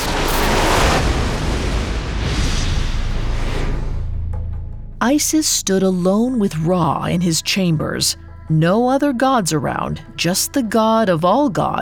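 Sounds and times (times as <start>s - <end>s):
lightning bolt strike: 0.0s - 5.0s
speech: 5.0s - 11.8s.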